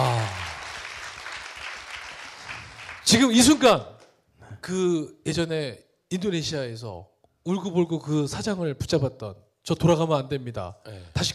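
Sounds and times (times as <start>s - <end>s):
audience applause: 0.0s - 3.6s
speech: 3.1s - 3.9s, 4.6s - 11.3s.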